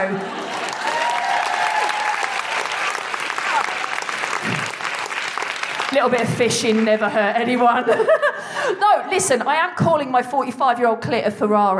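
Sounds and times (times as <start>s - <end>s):
audience big clap: 0.2s - 7.8s
speech: 5.9s - 11.7s
laughter: 7.6s - 8.8s.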